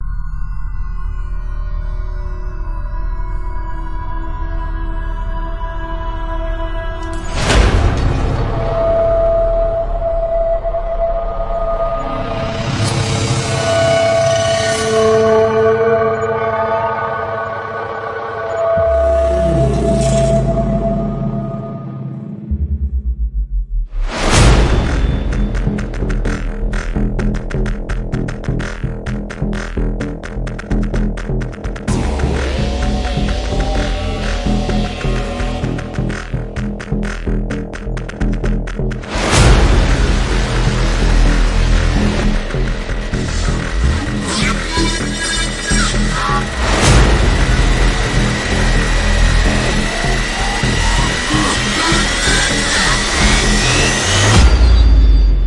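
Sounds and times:
synth music: 0.0 - 55.4.

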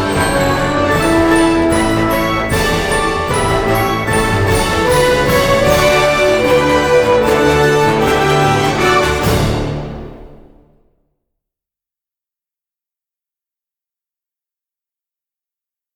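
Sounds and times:
Christmas song: 0.0 - 10.8.

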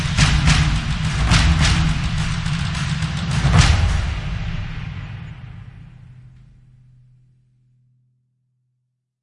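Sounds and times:
drums: 0.0 - 7.2.

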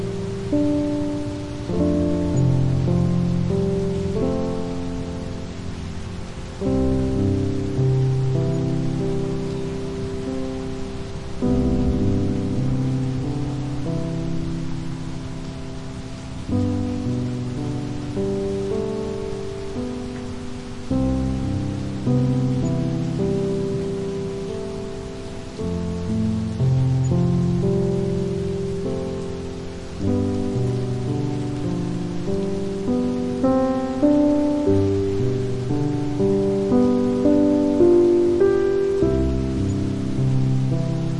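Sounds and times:
calming piano music: 0.0 - 41.1
rain in nature: 0.0 - 41.1.

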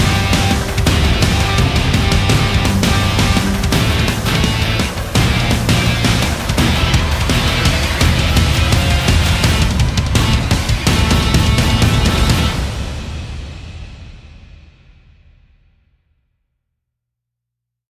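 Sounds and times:
epic speed metal band: 0.0 - 14.0.

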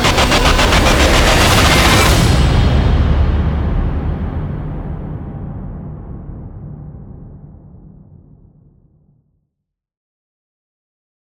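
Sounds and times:
rising sound: 0.0 - 4.3.

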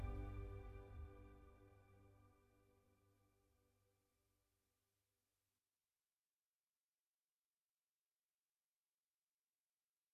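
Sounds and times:
ambient music: 0.0 - 2.6.

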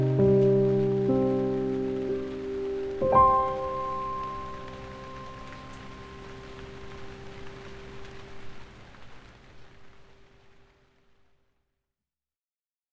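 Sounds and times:
piano piece: 0.0 - 8.6
rain: 0.0 - 11.6.

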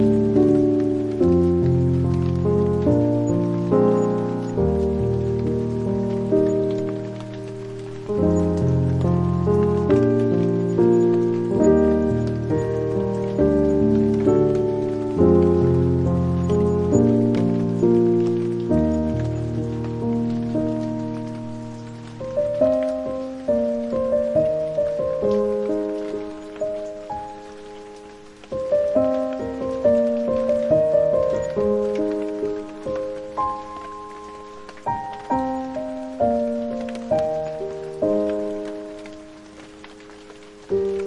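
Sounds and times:
piano: 0.0 - 41.0
rain: 0.0 - 41.0.

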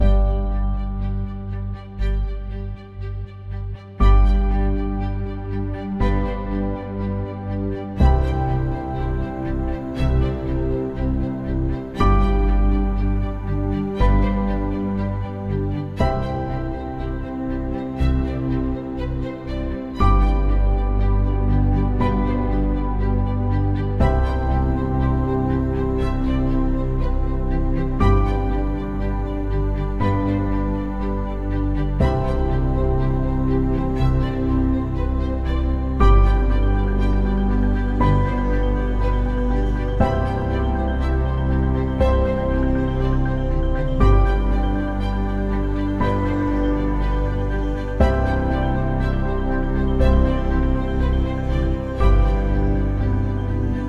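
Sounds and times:
effortless ambient music: 0.0 - 53.8.

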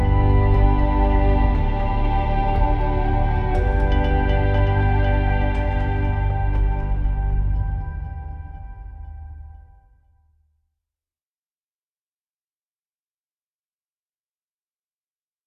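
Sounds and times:
joyful ambient music: 0.0 - 9.8.

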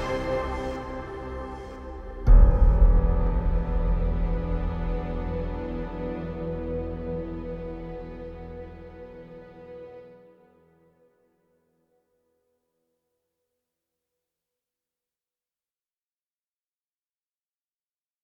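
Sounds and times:
defeat ambient music: 0.0 - 11.3.

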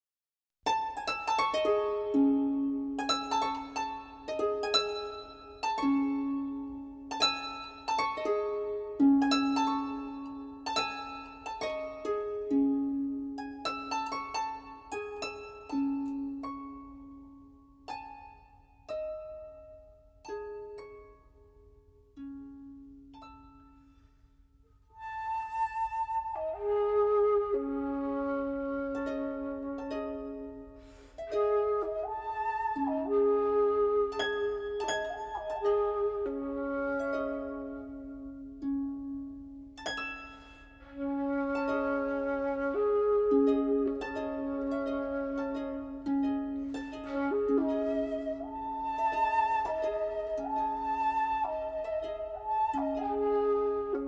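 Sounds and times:
harp playing an arrangement: 0.7 - 24.1, 25.7 - 54.0.

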